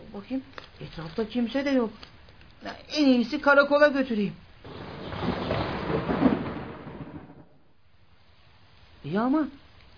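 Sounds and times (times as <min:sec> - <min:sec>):
speech: 0:00.1 - 0:05.3, 0:09.1 - 0:09.6
low roll of thunder: 0:04.6 - 0:07.8
heavy rain pouring on flooded streets: 0:04.6 - 0:09.0.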